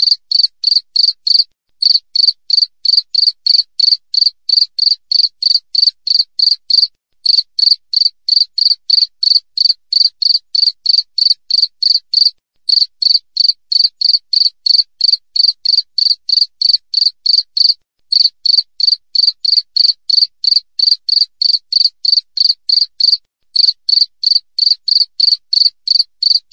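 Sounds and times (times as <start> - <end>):
cricket chirping: 0.0 - 26.5.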